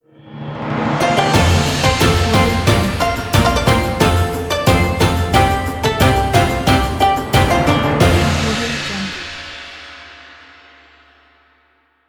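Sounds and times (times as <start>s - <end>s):
Chinese New Year music opener: 0.7s - 9.8s.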